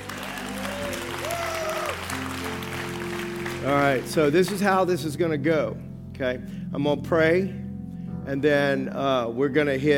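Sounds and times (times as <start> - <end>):
audience hand clapping: 0.0 - 4.8
speech: 3.6 - 7.6, 8.3 - 9.9.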